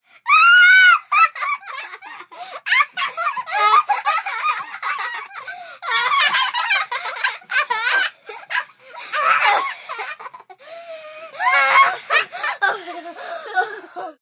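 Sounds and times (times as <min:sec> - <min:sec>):
children squealing: 0:00.3 - 0:01.3, 0:08.6 - 0:09.7, 0:11.4 - 0:12.3
two children laughing: 0:00.3 - 0:10.7, 0:11.3 - 0:14.2.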